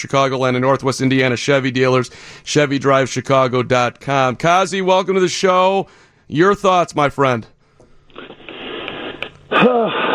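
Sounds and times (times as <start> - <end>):
speech: 0.0 - 7.5, 9.6 - 10.0
man breathing heavily: 2.1 - 2.5, 5.9 - 6.3.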